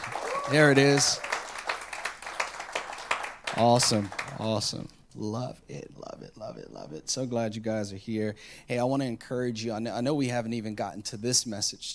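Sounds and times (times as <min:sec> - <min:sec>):
audience clapping in rhythm: 0:00.0 - 0:04.8
speech: 0:00.5 - 0:01.3, 0:03.6 - 0:11.9.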